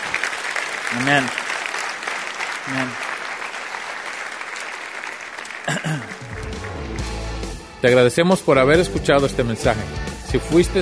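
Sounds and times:
audience applause: 0:00.0 - 0:07.3
speech: 0:00.9 - 0:01.4, 0:02.6 - 0:03.0, 0:05.6 - 0:07.2, 0:07.8 - 0:10.8.

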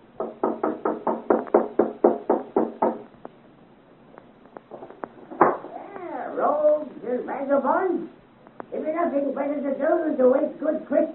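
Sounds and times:
knocking on a door: 0:00.2 - 0:03.1, 0:05.4 - 0:05.7
speech: 0:07.4 - 0:08.1, 0:08.9 - 0:11.1.

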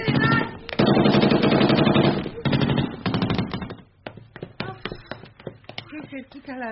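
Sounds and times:
gunfire bursts: 0:00.0 - 0:03.8.

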